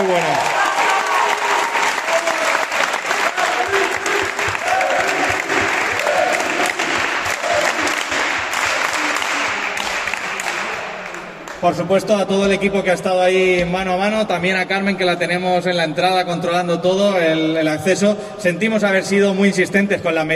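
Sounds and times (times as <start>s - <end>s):
speech: 0.0s - 0.6s, 11.6s - 20.3s
faint voices and cheers: 0.0s - 11.4s
loud audience applause: 0.0s - 11.6s.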